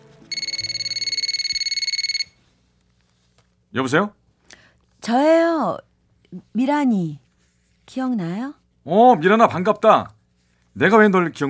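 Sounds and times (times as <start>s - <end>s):
mobile phone ringing during a call: 0.3s - 2.4s
speech: 3.7s - 4.2s, 5.0s - 7.2s, 7.9s - 10.2s, 10.8s - 11.4s.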